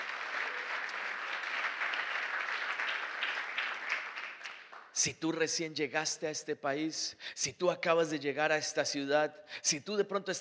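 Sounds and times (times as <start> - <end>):
audience applause: 0.0 - 4.9
speech: 5.0 - 10.3.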